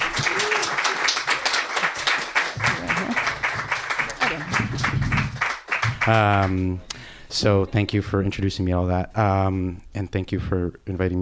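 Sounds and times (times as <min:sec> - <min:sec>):
audience applause: 0:00.0 - 0:06.8
speech: 0:06.1 - 0:11.1.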